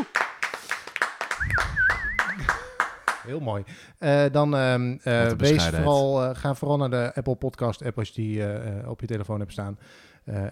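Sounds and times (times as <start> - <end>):
crowd applause: 0.0 - 3.3
speech: 3.2 - 10.5.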